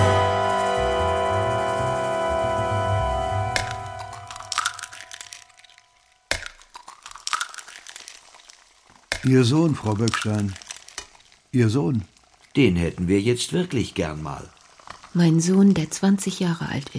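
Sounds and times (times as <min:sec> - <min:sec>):
steady droning hum: 0:00.0 - 0:06.2
speech: 0:09.2 - 0:10.6, 0:11.5 - 0:16.9.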